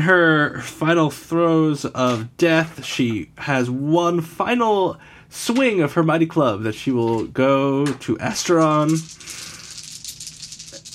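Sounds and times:
speech: 0.0 - 9.4
dice rattling in a cupped hand or cup: 8.3 - 10.9.

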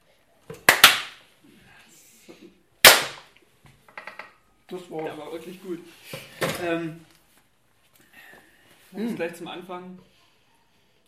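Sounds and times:
hand claps: 0.6 - 1.2
speech: 4.7 - 7.1, 8.9 - 10.1.

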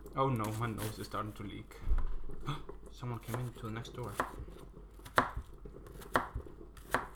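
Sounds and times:
knife chopping an onion: 0.0 - 1.4, 2.4 - 7.1
speech: 0.2 - 4.8.

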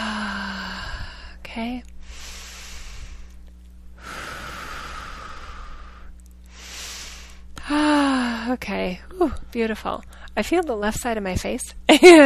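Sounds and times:
slow deep breath during a guided healing session: 0.0 - 1.4, 2.0 - 3.4, 4.0 - 8.5
faint steady hum: 0.0 - 12.2
speech: 1.5 - 2.2, 8.5 - 12.2.

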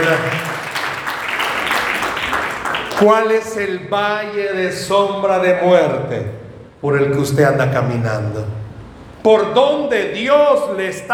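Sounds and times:
audience applauding: 0.0 - 3.5
speech: 0.1 - 0.5, 3.0 - 8.6, 9.2 - 11.1.

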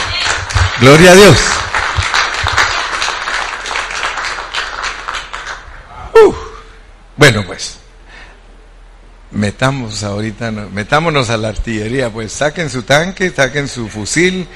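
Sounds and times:
audience clapping: 0.0 - 5.8
speech: 0.8 - 1.6, 7.2 - 7.8, 9.4 - 14.5
loud shouted voice: 6.1 - 6.7.

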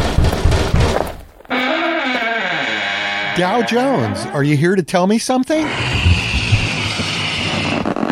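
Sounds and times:
heavy dull knocks on a door: 0.0 - 1.2
long wavering creak: 1.5 - 4.4, 5.5 - 8.0
speech: 3.4 - 6.0.

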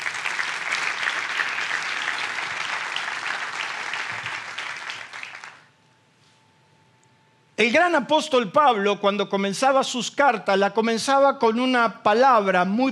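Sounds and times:
audience applause: 0.0 - 5.7
speech: 7.6 - 12.9.

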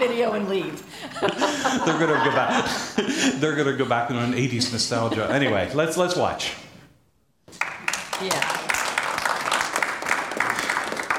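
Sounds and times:
speech: 0.0 - 6.6, 8.2 - 8.6
laughter: 1.0 - 6.3
audience applause: 7.5 - 11.1.

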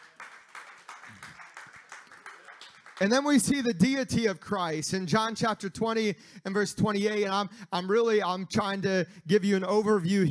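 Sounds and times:
audience clapping hands in praise: 0.0 - 4.2
speech: 3.0 - 10.2.

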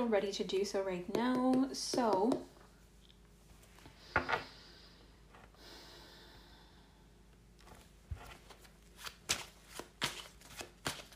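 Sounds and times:
speech: 0.0 - 2.5
Tarot of the Divine tarot cards being shuffled: 7.6 - 11.1.

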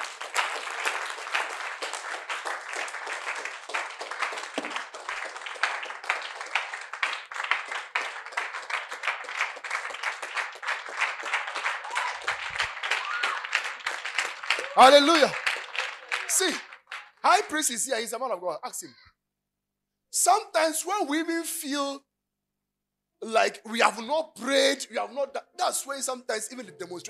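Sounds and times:
audience clapping: 0.0 - 18.1
speech: 14.8 - 15.4, 16.4 - 19.1, 20.2 - 22.0, 23.3 - 27.0.

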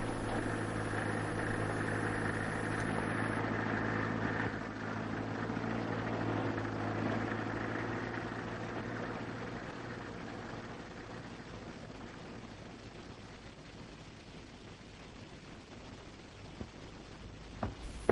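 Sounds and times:
engine rumble from a black car and a moving truck on a rural road: 0.0 - 12.6, 17.6 - 18.0
faint clicks: 2.5 - 3.4.

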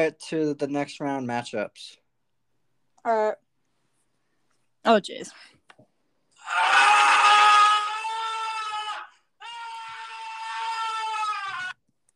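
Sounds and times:
speech: 0.0 - 2.0, 3.0 - 3.4, 4.8 - 5.6
person screaming: 6.4 - 11.8.

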